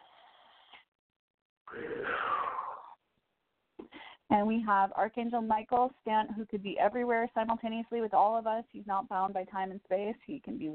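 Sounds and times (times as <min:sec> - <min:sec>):
deep breath during a guided spiritual group call: 0:01.7 - 0:03.0, 0:03.8 - 0:04.3
speech: 0:04.3 - 0:10.7.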